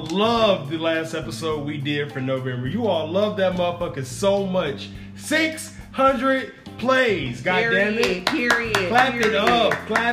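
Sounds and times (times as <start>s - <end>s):
speech: 0.1s - 10.1s
hands clapping: 7.6s - 10.1s.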